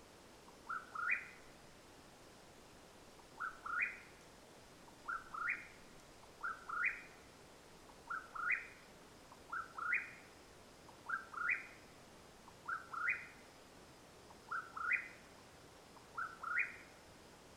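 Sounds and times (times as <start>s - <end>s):
quiet steady background hiss: 0.0s - 17.5s
Mexican whip-poor-will calling: 0.5s - 1.6s, 3.2s - 4.2s, 4.9s - 7.3s, 7.9s - 13.5s, 14.3s - 15.3s, 15.9s - 17.0s.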